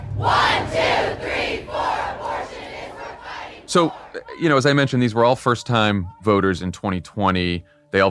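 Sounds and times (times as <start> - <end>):
speech: 0.2 - 0.7, 3.7 - 8.0
rally crowd chanting: 0.2 - 4.4.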